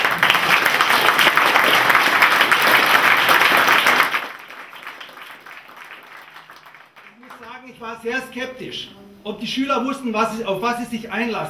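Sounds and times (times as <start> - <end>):
audience applause: 0.0 - 7.6
speech: 8.0 - 11.4.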